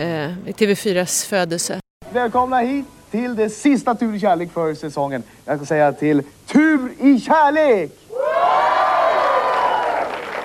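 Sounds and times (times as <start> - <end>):
speech: 0.0 - 8.0
studio audience applauding: 8.2 - 10.4.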